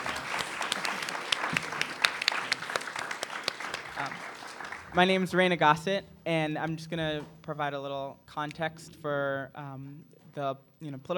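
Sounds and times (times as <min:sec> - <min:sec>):
audience applause: 0:00.0 - 0:05.4
speech: 0:05.0 - 0:11.1.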